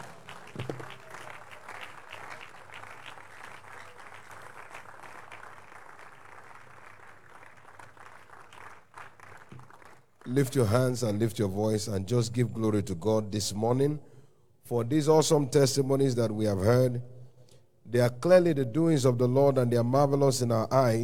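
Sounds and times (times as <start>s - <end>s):
audience applause: 0.0s - 10.2s
speech: 10.3s - 14.1s, 14.7s - 17.1s, 17.9s - 21.0s.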